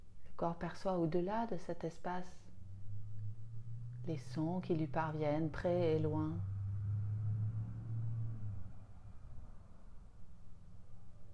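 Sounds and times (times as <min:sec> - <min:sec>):
speech: 0:00.4 - 0:02.4, 0:04.0 - 0:06.5
distant city traffic rumble: 0:02.4 - 0:11.3
vehicle hum: 0:02.4 - 0:11.3.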